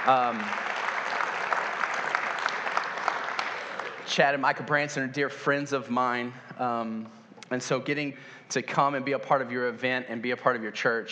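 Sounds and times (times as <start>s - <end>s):
speech: 0.0s - 0.7s, 4.1s - 11.1s
audience clapping: 0.0s - 5.0s.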